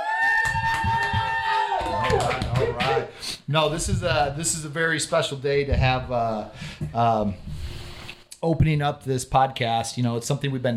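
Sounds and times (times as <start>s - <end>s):
studio audience cheering: 0.0s - 3.1s
speech: 3.5s - 7.6s, 8.4s - 10.7s.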